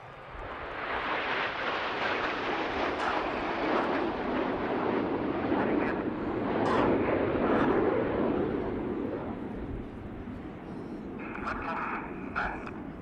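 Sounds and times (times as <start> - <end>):
aerobatic display jets flying past: 0.0 - 12.9
faint voices: 9.9 - 12.9.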